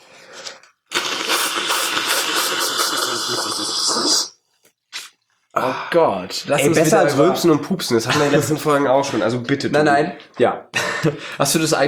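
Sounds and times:
nose blowing: 0:00.0 - 0:05.2
speech: 0:05.6 - 0:11.8.

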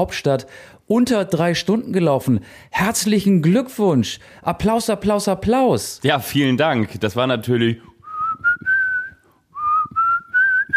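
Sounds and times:
speech: 0:00.0 - 0:08.7
whistled melody from a song: 0:08.0 - 0:10.7.

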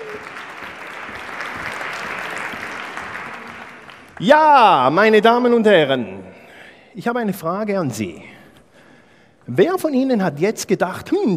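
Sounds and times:
audience applause: 0:00.0 - 0:04.4
speech: 0:04.2 - 0:06.3, 0:07.0 - 0:08.3, 0:09.5 - 0:11.3.

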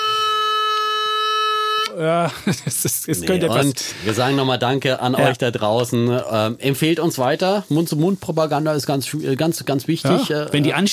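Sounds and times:
toy noisemaker horn blast: 0:00.0 - 0:02.0
laughter: 0:02.0 - 0:04.5, 0:10.1 - 0:10.9
speech: 0:02.0 - 0:10.9.

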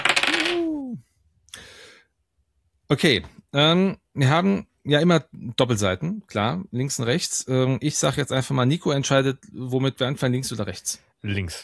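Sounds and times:
game dice roll rattling: 0:00.0 - 0:00.7
speech: 0:02.9 - 0:11.6.

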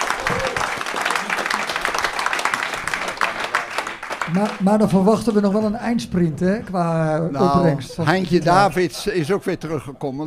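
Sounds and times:
audience applause: 0:00.0 - 0:05.0
speech: 0:04.3 - 0:10.2.

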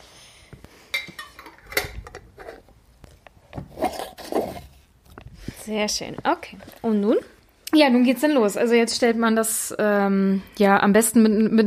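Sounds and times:
metal lids screwed onto filled glass jars: 0:01.0 - 0:02.7
speech: 0:05.7 - 0:11.6.

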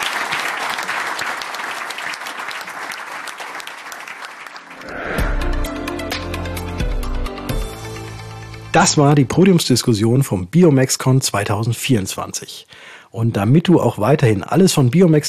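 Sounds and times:
audience applause: 0:00.0 - 0:05.8
speech: 0:08.8 - 0:15.2.

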